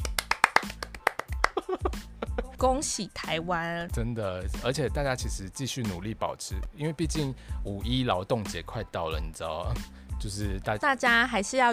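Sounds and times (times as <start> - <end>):
hand clapping: 0.0 - 2.1
speech: 1.7 - 11.7.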